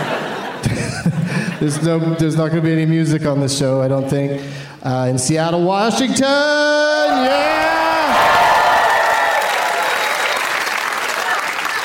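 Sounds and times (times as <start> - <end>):
laughter: 0.0 - 2.0
speech: 0.6 - 8.3
audience clapping: 7.2 - 11.8.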